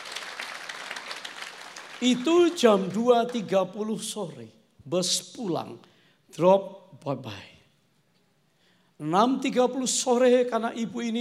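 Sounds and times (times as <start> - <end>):
audience applause: 0.0 - 2.9
speech: 2.0 - 7.5, 9.0 - 11.1.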